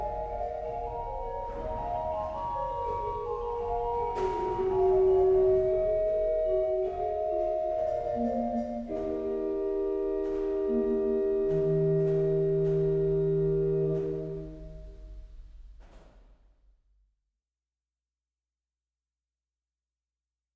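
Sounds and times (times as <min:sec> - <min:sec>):
canzona in D on organ: 0:00.0 - 0:15.6.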